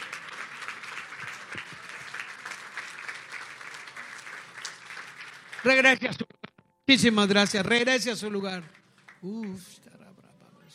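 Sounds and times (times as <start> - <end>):
crowd applause: 0.0 - 6.0
speech: 5.6 - 6.3, 6.9 - 9.8.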